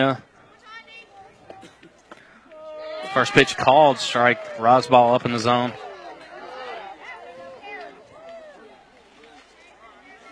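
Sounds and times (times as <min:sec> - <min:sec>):
speech: 0:00.0 - 0:00.3, 0:03.1 - 0:05.8
crowd chatter at softball game: 0:00.0 - 0:10.2
people shouting in a crowd at softball game: 0:02.4 - 0:09.5.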